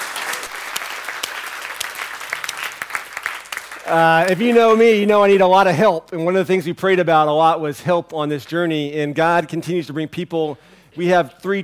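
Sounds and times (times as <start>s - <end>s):
audience applause: 0.0s - 4.8s
speech: 3.9s - 11.6s.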